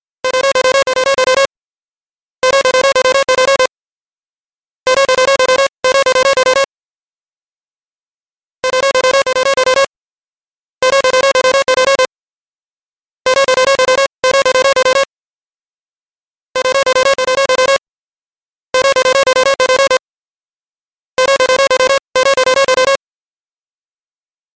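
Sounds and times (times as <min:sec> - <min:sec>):
Galaxy S4 cell phone sound: 0:00.2 - 0:01.5, 0:02.4 - 0:03.8, 0:04.9 - 0:06.8, 0:08.6 - 0:09.9, 0:10.8 - 0:12.1, 0:13.3 - 0:15.1, 0:16.6 - 0:17.8, 0:18.8 - 0:20.1, 0:21.2 - 0:23.1.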